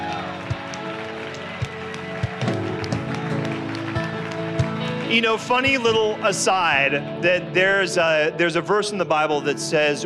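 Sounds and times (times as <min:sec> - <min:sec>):
crowd applauding: 0:00.0 - 0:06.9
speech: 0:05.1 - 0:10.0.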